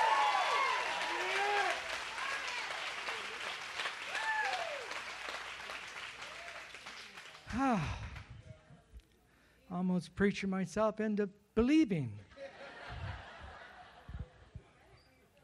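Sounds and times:
loud whoop: 0:00.0 - 0:02.7, 0:04.1 - 0:05.0
crowd shouting and cheering: 0:00.0 - 0:05.1
audience clapping: 0:00.0 - 0:08.3
speech: 0:07.6 - 0:08.0, 0:09.7 - 0:12.3
laughter: 0:12.3 - 0:15.0.

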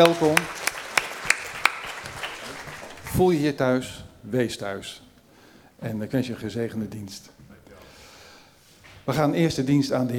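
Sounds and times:
speech: 0:00.0 - 0:00.6, 0:03.2 - 0:05.0, 0:05.8 - 0:07.4, 0:09.0 - 0:10.1
sparse applause: 0:00.0 - 0:03.3.

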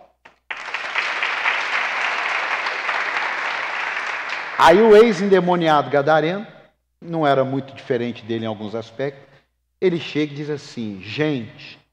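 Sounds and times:
audience applause: 0:00.5 - 0:05.3
speech: 0:04.6 - 0:11.8.

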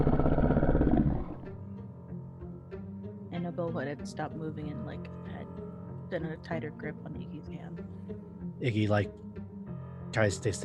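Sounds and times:
animal growling in a forest: 0:00.0 - 0:01.5
speech: 0:03.9 - 0:05.4, 0:06.1 - 0:09.4, 0:10.1 - 0:10.6.

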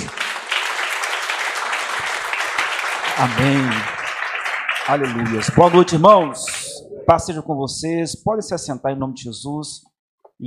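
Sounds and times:
audience applauding: 0:00.0 - 0:06.8
speech: 0:03.2 - 0:04.0, 0:04.9 - 0:06.5, 0:07.1 - 0:10.4.

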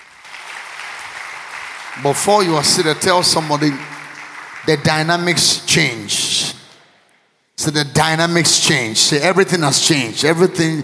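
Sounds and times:
audience clapping: 0:00.0 - 0:06.8
speech: 0:02.0 - 0:04.0, 0:04.6 - 0:06.6, 0:07.6 - 0:10.8.

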